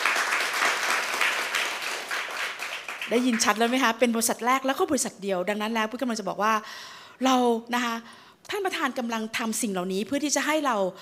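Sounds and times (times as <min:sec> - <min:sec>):
audience applause: 0:00.0 - 0:03.6
speech: 0:03.1 - 0:11.0.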